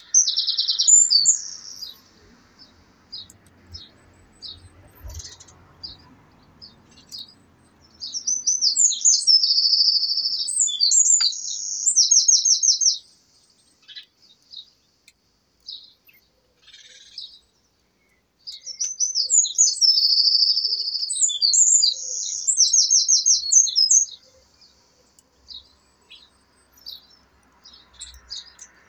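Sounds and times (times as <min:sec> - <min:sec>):
Eurasian wren singing: 0:00.0 - 0:28.8
faint chirps from other birds: 0:00.0 - 0:28.8
low background rumble: 0:01.9 - 0:07.7.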